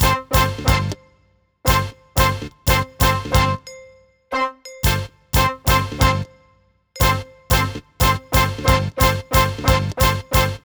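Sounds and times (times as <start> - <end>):
main melody: 0.0 - 1.0, 1.7 - 3.7, 4.8 - 6.3, 7.0 - 10.6.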